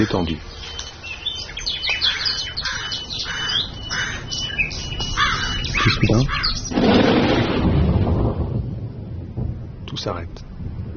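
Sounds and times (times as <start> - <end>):
speech: 0.0 - 0.8, 5.8 - 7.5, 9.9 - 10.7
birds chirping and singing in a forest: 0.0 - 7.6
soft outdoor hush: 0.0 - 10.9.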